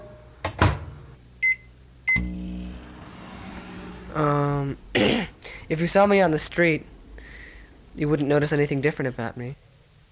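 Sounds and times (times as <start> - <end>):
microwave oven running: 0.0 - 5.2
speech: 4.2 - 6.9, 8.0 - 9.7.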